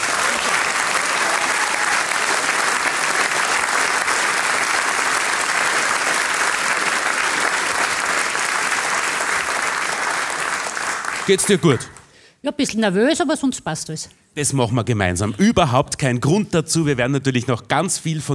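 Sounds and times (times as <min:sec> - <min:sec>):
audience applause: 0:00.0 - 0:12.1
speech: 0:11.3 - 0:18.3.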